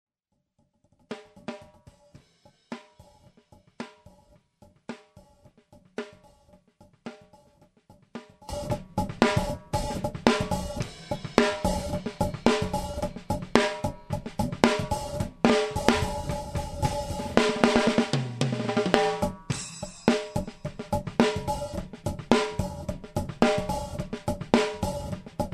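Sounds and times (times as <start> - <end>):
snare drum: 8.1 - 25.5.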